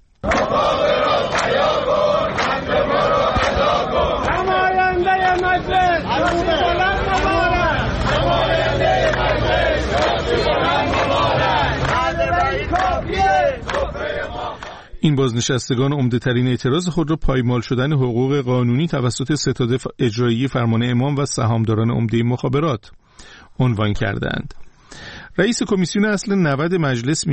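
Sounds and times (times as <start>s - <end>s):
crowd noise: 0.0s - 15.4s
retirees chanting slogans at a rally in Iran: 0.2s - 15.1s
speech: 15.0s - 27.3s.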